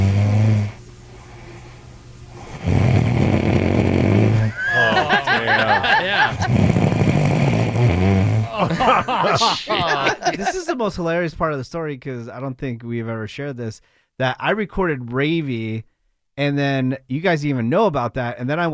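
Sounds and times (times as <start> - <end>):
sleeping person snoring: 0.0 - 0.8, 2.3 - 9.8
laughter: 4.4 - 6.6, 8.4 - 10.8
speech: 8.6 - 18.7.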